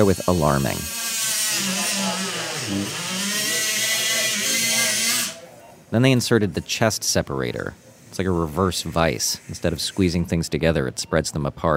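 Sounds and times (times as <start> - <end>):
speech: 0.0 - 1.0, 2.7 - 3.0, 5.9 - 11.7
surgical saw cutting through a breastbone: 0.0 - 5.4.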